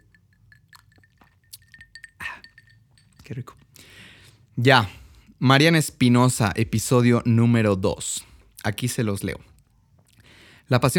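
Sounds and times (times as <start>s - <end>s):
glass clinks: 0.0s - 3.8s
person sipping sangria from a glass: 0.7s - 2.8s
speech: 3.3s - 3.6s, 4.6s - 9.5s, 10.7s - 10.9s.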